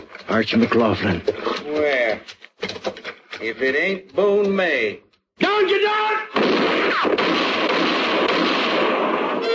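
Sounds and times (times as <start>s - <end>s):
speech: 0.3s - 2.4s, 3.4s - 6.2s
gunfire in a shootout in a moonlit clearing: 6.3s - 9.4s.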